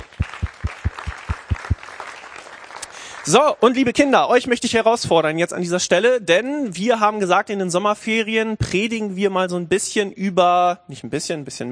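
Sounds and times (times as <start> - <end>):
audience applause: 0.0 - 3.2
speech: 3.3 - 11.7.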